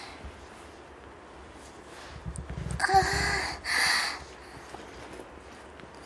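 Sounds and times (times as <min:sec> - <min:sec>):
woman's erotic masturbation voice ASMR: 0:02.4 - 0:04.2.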